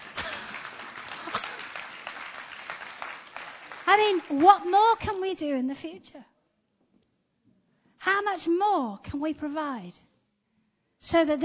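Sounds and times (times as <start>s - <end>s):
clapping: 0.0s - 4.7s
speech: 3.9s - 6.3s, 8.0s - 10.1s, 11.0s - 11.4s.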